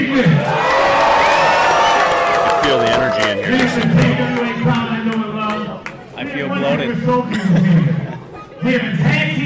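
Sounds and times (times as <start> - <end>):
crowd cheering and shouting at a wrestling event: 0.2 - 4.8
speech: 3.4 - 4.8, 6.5 - 9.4.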